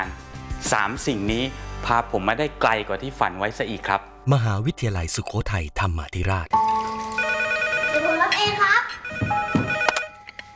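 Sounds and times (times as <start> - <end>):
speech: 0.0 - 6.6, 8.0 - 9.4
phone ringtone electronic melody: 6.6 - 10.3.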